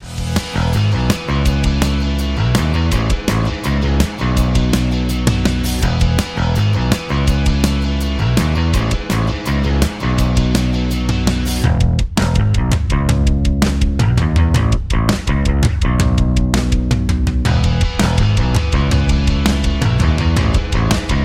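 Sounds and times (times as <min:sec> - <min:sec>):
rock ringtone: 0:00.0 - 0:21.2.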